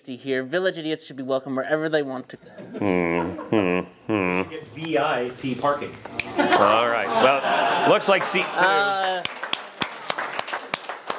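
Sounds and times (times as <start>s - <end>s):
speech: 0.0s - 9.4s
laughter: 2.4s - 4.5s, 6.2s - 9.2s
comedy show audience clapping: 7.2s - 11.1s.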